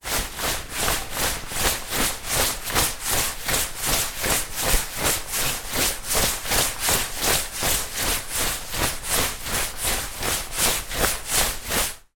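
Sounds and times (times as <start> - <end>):
raincoat rustling while running: 0.0 - 12.0.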